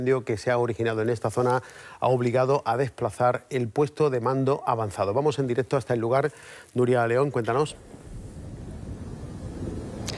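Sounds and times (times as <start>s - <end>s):
speech: 0.0s - 7.9s
strong wind at a wildfire site buffeting the microphone: 7.7s - 10.1s.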